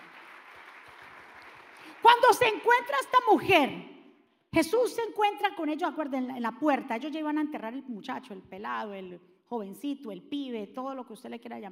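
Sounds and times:
audience applauding: 0.0 - 2.1
speech: 2.0 - 3.9, 4.5 - 11.6.

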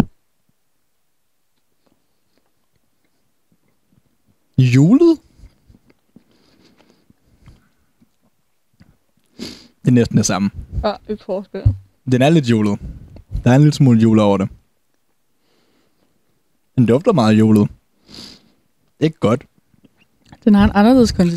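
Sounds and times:
chewing a bun: 1.6 - 4.4, 5.4 - 9.4
speech: 4.6 - 5.1, 9.9 - 14.6, 16.8 - 17.8, 19.0 - 19.5, 20.4 - 21.3.

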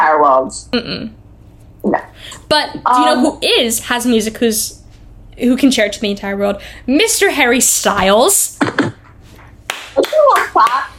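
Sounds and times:
speech: 0.2 - 1.2, 1.8 - 4.8, 5.4 - 9.0, 10.6 - 10.9
hand claps: 8.7 - 10.9.

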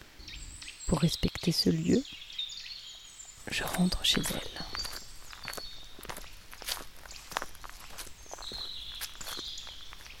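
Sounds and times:
thin birdsong: 0.0 - 10.1
speech: 0.9 - 2.2, 3.5 - 4.8
footsteps crunching on a garden path: 3.3 - 10.1.

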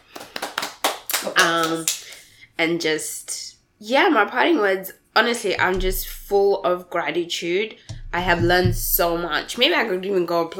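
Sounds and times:
hand clapping: 0.0 - 2.3
speech: 1.2 - 2.0, 2.6 - 10.5.

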